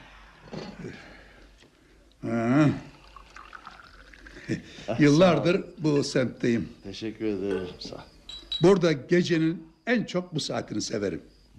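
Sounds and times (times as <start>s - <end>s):
speech: 0.8s - 1.1s, 4.5s - 11.5s
tea being poured into glasses: 2.6s - 5.2s
soft clinks: 7.4s - 8.8s.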